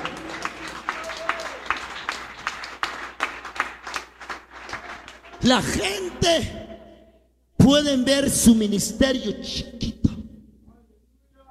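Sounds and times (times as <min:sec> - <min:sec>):
audience applauding: 0:00.0 - 0:05.8
speech: 0:05.4 - 0:06.6, 0:07.7 - 0:09.8.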